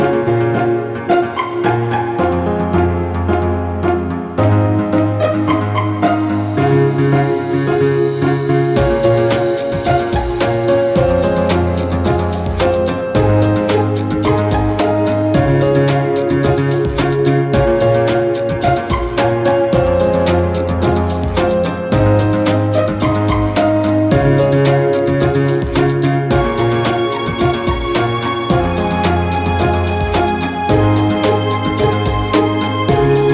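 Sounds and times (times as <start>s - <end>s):
background music for furniture company commercial: 0.0s - 33.3s.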